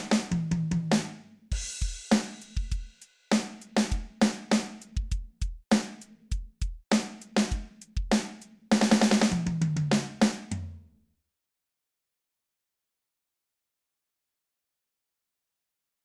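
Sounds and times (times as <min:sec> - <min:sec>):
drum solo: 0:00.0 - 0:10.7.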